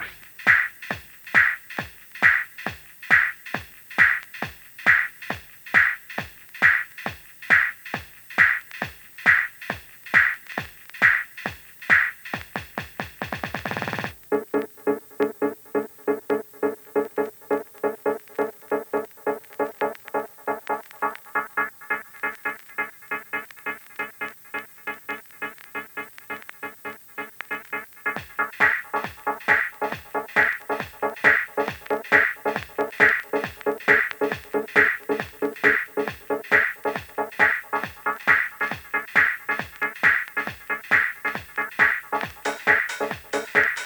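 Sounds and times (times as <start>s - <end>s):
dub mix: 0.0s - 24.7s, 25.4s - 43.8s.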